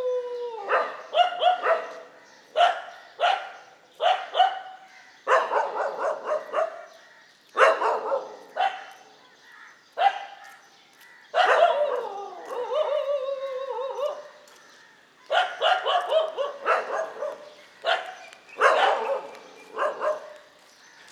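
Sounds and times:
dogs barking: 0.6s - 7.0s, 7.6s - 9.2s, 10.0s - 10.5s, 11.4s - 13.2s, 15.3s - 20.5s
dog howling: 11.4s - 14.2s.

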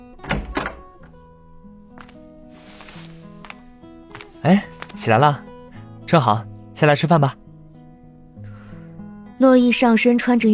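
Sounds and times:
door being pushed open: 0.2s - 0.9s
speech: 4.4s - 5.5s, 6.1s - 7.4s, 9.4s - 10.5s.

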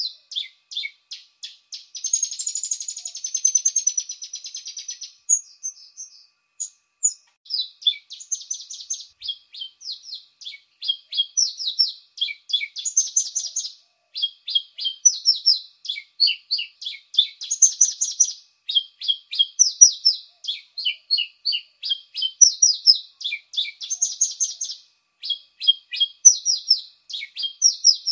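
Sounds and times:
Javan bushlark song of chirps, falling notes and buzzy trill: 0.0s - 28.1s.

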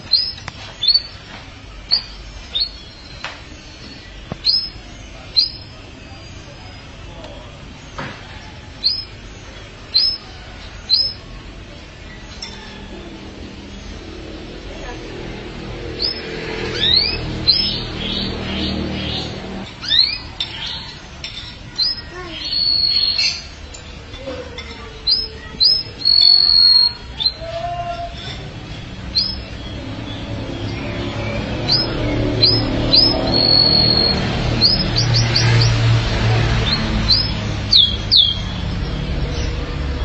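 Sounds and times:
canary song: 0.0s - 40.0s.

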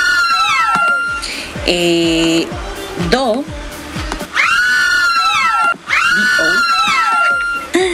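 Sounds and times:
fans screaming and cheering: 0.0s - 1.4s, 4.3s - 7.8s
speech: 1.7s - 3.6s.

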